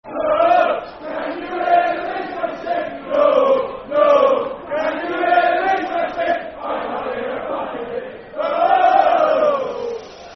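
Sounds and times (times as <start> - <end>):
football chant: 0.0 - 10.3.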